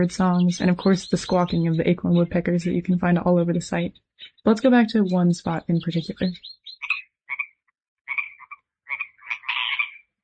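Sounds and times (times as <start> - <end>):
Pacific chorus frogs croaking: 0.0 - 2.8, 5.4 - 10.1
speech: 0.0 - 6.6.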